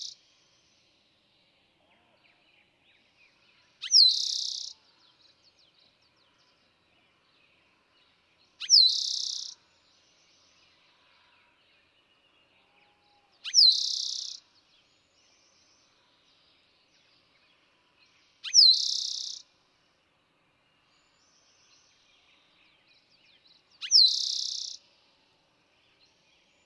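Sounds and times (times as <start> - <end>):
Eastern towhee trilling song: 3.8 - 4.8, 8.6 - 9.6, 13.4 - 14.4, 18.4 - 19.4, 23.8 - 24.8.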